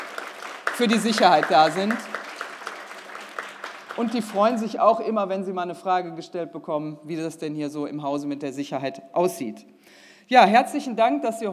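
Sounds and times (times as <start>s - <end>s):
audience applause: 0.0s - 4.9s
speech: 0.8s - 2.1s, 4.0s - 11.5s.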